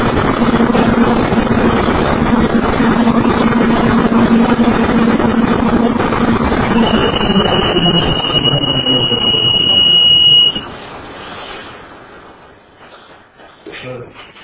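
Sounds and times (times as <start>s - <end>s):
busy noise: 0.0s - 14.4s
fire alarm panel distress alarm tone: 6.6s - 10.7s.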